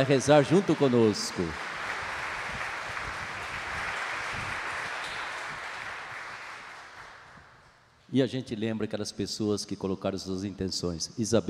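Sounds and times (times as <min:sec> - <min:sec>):
speech: 0:00.0 - 0:01.7, 0:08.1 - 0:11.4
audience applause: 0:00.0 - 0:07.4.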